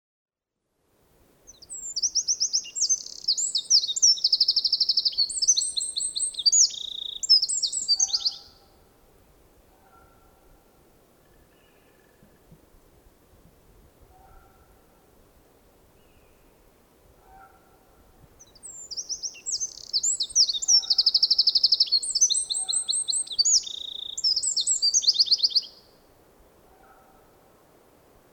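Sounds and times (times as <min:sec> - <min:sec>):
Eurasian wren song: 0:01.4 - 0:08.9, 0:16.0 - 0:26.0.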